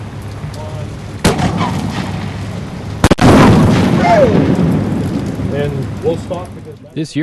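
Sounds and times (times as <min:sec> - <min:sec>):
firework shell exploding on the ground in the rain: 0:01.2 - 0:06.6.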